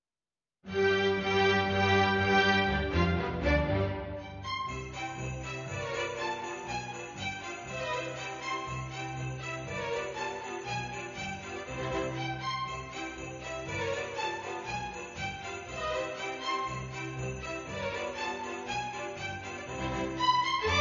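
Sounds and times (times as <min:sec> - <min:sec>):
string orchestra playing a polka: 0:00.7 - 0:20.7.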